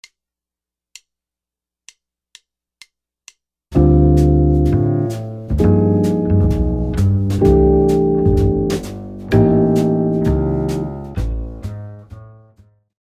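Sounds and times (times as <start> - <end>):
jazz guitar comping: 3.8 - 12.5.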